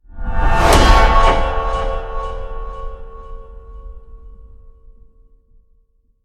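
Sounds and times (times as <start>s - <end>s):
trailer punch impact hit: 0.2s - 4.7s.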